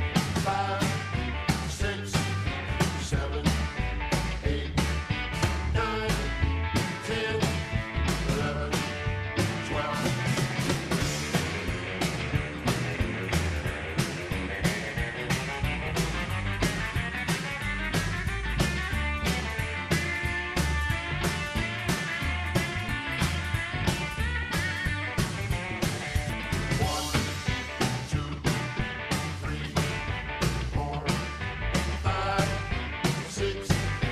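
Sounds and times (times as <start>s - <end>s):
12-bar blues in D: 0.0s - 34.0s.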